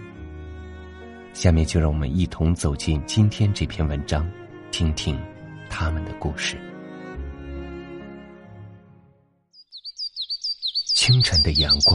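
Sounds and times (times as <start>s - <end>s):
speech: 1.4s - 6.7s, 11.1s - 11.9s
birds chirping in the morning: 9.6s - 11.9s.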